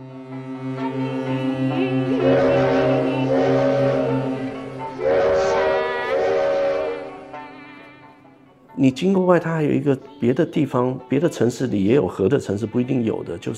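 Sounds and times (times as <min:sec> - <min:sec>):
deep ship horn on the river: 0:00.0 - 0:08.2
higher brassy ship horn blasts: 0:01.8 - 0:08.1
speech: 0:08.8 - 0:13.5.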